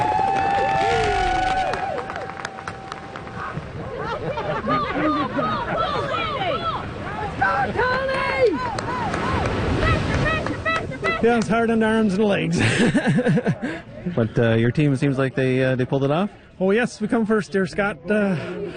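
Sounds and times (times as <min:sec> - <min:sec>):
crowd applause: 0:00.0 - 0:11.6
laughter: 0:03.2 - 0:09.0, 0:09.7 - 0:11.8, 0:12.4 - 0:14.7
speech: 0:11.2 - 0:18.7.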